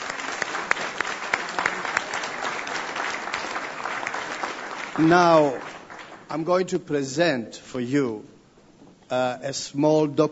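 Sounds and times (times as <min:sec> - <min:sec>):
audience applause: 0:00.0 - 0:06.5
speech: 0:05.0 - 0:05.6, 0:06.3 - 0:08.4, 0:09.1 - 0:10.3.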